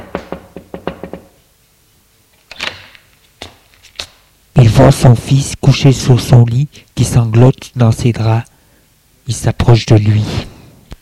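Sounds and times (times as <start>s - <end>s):
knocking on a door: 0.0s - 1.4s
speech: 4.8s - 8.5s, 9.3s - 10.5s.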